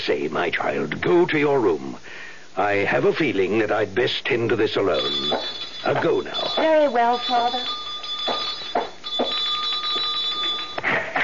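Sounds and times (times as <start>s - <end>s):
speech: 0.0s - 8.4s
doorbell buzzing: 4.9s - 11.1s.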